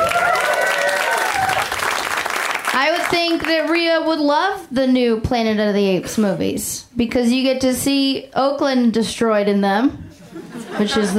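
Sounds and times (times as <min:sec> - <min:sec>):
audience applause: 0:00.0 - 0:02.8
speech: 0:02.8 - 0:11.1
laughter: 0:10.2 - 0:11.1.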